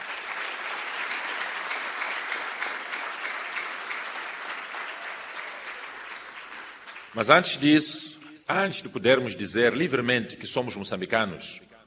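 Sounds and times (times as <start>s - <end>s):
audience applause: 0.0s - 7.5s
speech: 7.1s - 11.7s.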